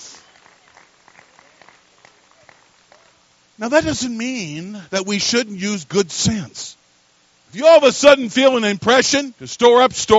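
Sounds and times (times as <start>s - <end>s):
audience clapping: 0.2s - 3.2s
speech: 3.6s - 6.8s, 7.5s - 10.1s.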